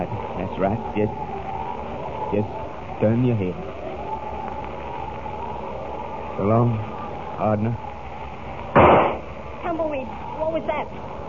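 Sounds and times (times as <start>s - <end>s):
speech: 0.5s - 1.3s, 2.3s - 3.7s, 6.4s - 7.9s, 9.7s - 11.2s
gunshot: 8.8s - 9.3s.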